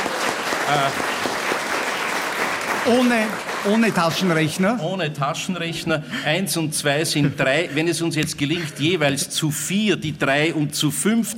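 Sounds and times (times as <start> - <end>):
audience applause: 0.0 - 4.8
speech: 0.7 - 1.1, 2.8 - 11.3.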